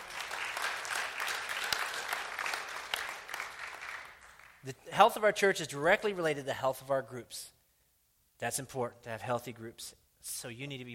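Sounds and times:
audience applauding: 0.0 - 4.7
speech: 4.6 - 7.6, 8.4 - 10.9.

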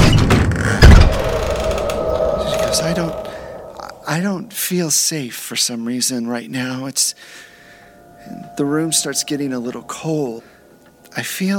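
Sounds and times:
door creak: 0.0 - 4.1
dull rumble: 0.8 - 4.5
speech: 2.8 - 3.3, 4.1 - 7.5, 8.2 - 10.5, 11.1 - 11.5.

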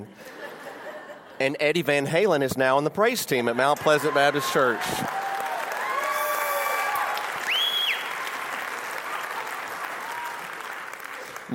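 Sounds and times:
speech: 1.4 - 5.2
audience applauding and cheering: 3.5 - 11.5.

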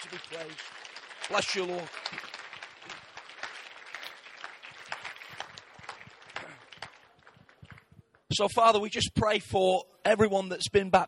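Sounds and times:
speech: 0.0 - 2.3, 8.4 - 11.0
audience hand clapping: 0.0 - 8.3.

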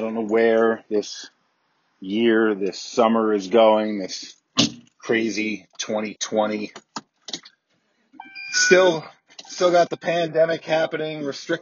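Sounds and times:
speech: 0.0 - 1.4, 2.0 - 4.4, 5.1 - 7.0, 8.6 - 11.6
truck warning chime dinging: 8.2 - 10.8.

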